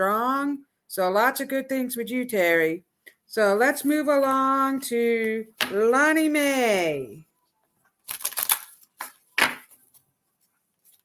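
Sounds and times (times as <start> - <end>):
speech: 0.0 - 7.3
tarot cards being shuffled and drawn: 8.0 - 11.0.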